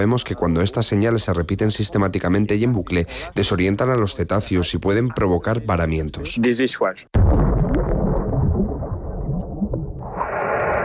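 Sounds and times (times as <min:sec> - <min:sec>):
speech: 0:00.0 - 0:07.4
underwater bomb explosions: 0:07.2 - 0:10.8.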